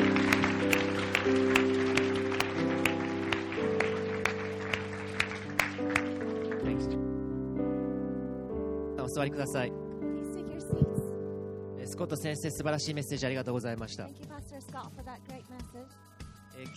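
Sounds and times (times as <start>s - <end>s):
audience clapping: 0.0s - 7.0s
sustained organ-like chords: 0.0s - 14.0s
speech: 9.2s - 9.8s, 12.0s - 15.3s, 16.6s - 16.7s.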